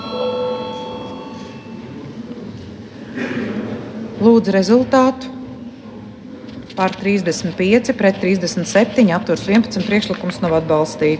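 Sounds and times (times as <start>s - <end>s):
parliament voting bell electronic tone: 0.0s - 2.0s
murmur of the chamber: 0.0s - 11.1s
speech: 4.2s - 5.4s, 6.8s - 11.1s.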